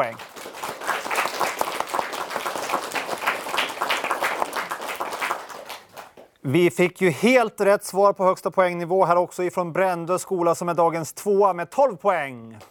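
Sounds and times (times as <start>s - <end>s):
crowd applause: 0.0s - 6.2s
speech: 6.4s - 12.6s.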